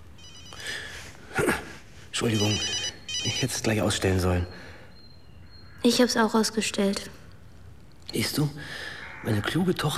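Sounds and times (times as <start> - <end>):
mobile phone ringing: 0.2 - 0.6, 2.3 - 4.0
speech: 2.2 - 4.7, 5.8 - 7.2, 8.1 - 9.9.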